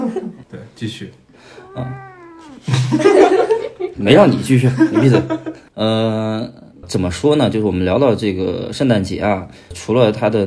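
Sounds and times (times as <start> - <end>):
speech: 0.3 - 10.4
cat meowing: 1.5 - 2.7
laughter: 2.6 - 4.0, 4.6 - 5.7.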